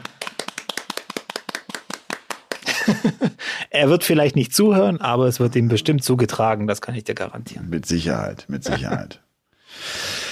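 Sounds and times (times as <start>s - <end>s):
hand clapping: 0.0s - 3.0s
laughter: 2.6s - 3.4s, 8.6s - 9.2s
speech: 2.8s - 9.9s.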